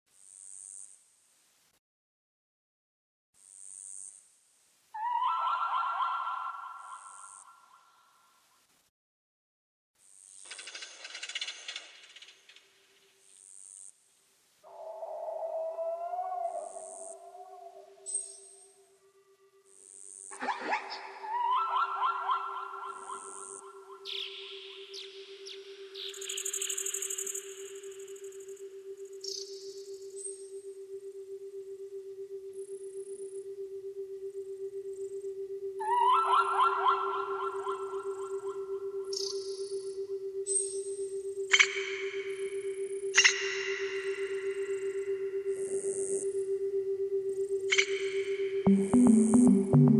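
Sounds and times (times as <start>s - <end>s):
nature sounds: 5.0s - 8.4s, 14.6s - 49.9s
ambient music: 47.7s - 49.9s.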